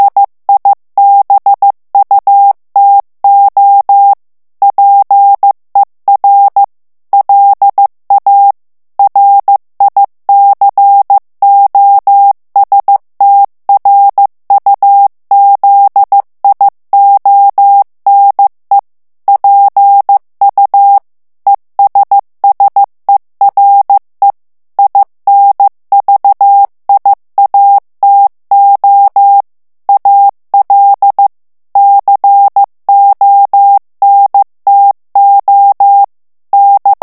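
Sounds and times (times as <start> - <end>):
morse code plain text at 14 words per minute: 0.0 - 37.0.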